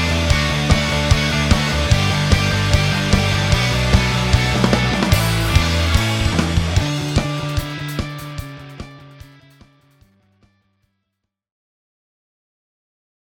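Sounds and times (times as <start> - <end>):
rock pop band playing: 0.0 - 10.0.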